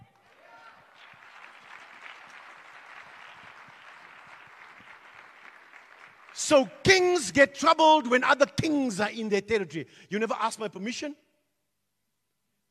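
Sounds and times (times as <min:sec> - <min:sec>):
audience clapping: 0:00.0 - 0:07.2
speech: 0:06.4 - 0:11.2.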